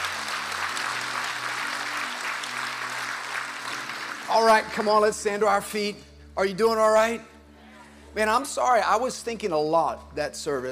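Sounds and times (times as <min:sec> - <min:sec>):
audience clapping: 0:00.0 - 0:05.5
speech: 0:04.4 - 0:07.3, 0:08.2 - 0:10.7.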